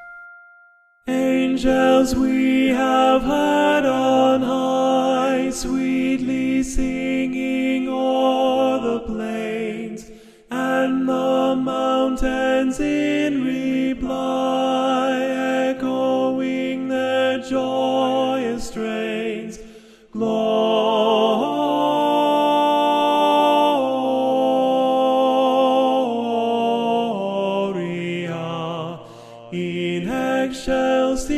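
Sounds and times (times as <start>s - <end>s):
tenor singing: 1.1s - 31.3s.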